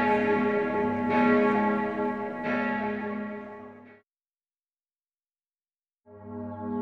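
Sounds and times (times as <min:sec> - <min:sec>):
bells of varying quality ringing: 0:00.0 - 0:03.9.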